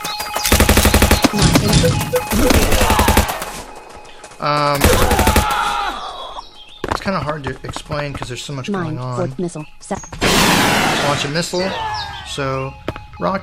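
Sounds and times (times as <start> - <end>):
machine gun firing in a video game: 0.0 - 4.0, 4.8 - 5.7
buzzing electronic game sound: 0.4 - 3.7
speech: 4.4 - 5.1, 7.1 - 13.4.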